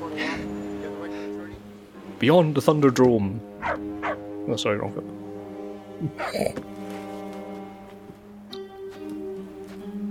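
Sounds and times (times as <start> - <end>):
speech: 2.2 - 5.2, 6.0 - 6.8
dog barking: 3.6 - 4.2.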